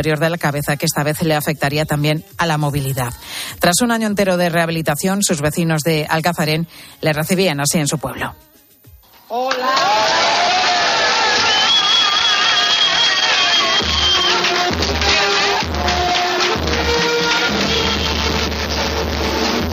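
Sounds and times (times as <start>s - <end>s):
speech: 0.0s - 8.5s, 9.3s - 10.4s
music: 0.0s - 19.7s
crowd applause: 9.3s - 19.7s.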